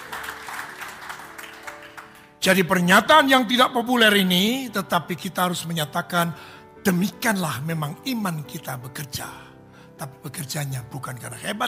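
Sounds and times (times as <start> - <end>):
audience applause: 0.0 - 2.4
speech: 2.4 - 11.6.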